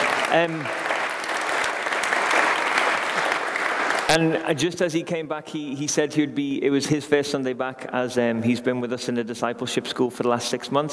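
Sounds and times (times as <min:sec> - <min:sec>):
audience applause: 0:00.0 - 0:04.6
speech: 0:00.3 - 0:00.8, 0:04.1 - 0:10.9.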